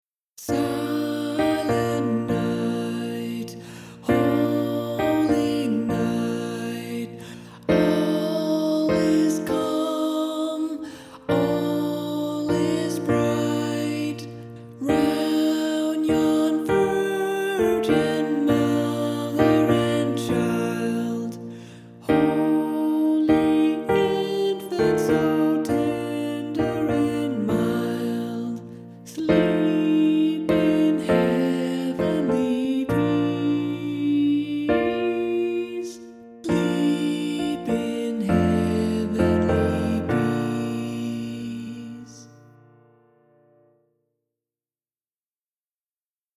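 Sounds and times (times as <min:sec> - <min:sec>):
alto voice singing: 0:00.4 - 0:42.8.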